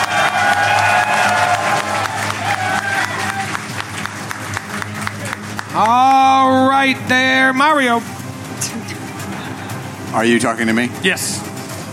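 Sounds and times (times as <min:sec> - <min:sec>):
cheers and whoops: 0:00.0 - 0:03.7
audience applause: 0:00.0 - 0:06.6
speech: 0:06.8 - 0:08.8, 0:10.1 - 0:11.9.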